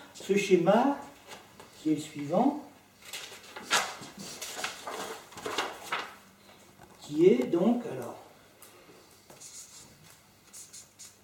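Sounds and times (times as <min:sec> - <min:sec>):
speech: 0:00.3 - 0:01.1, 0:01.8 - 0:02.7, 0:07.1 - 0:08.2
pen writing on paper: 0:09.4 - 0:09.9, 0:10.5 - 0:11.2.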